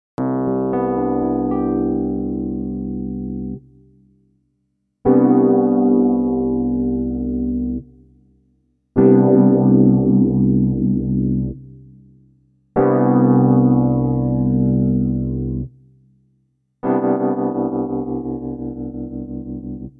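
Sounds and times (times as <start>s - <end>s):
electric piano without effects: 0.2s - 3.9s, 5.1s - 7.9s, 9.0s - 11.8s, 12.8s - 15.7s, 16.8s - 19.9s.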